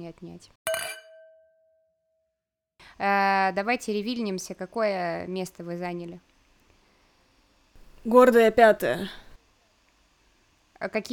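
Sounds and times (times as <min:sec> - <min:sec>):
speech: 0:00.1 - 0:00.8, 0:03.0 - 0:06.3, 0:08.0 - 0:09.2, 0:10.8 - 0:11.1
glasses clinking in a toast: 0:00.7 - 0:01.5.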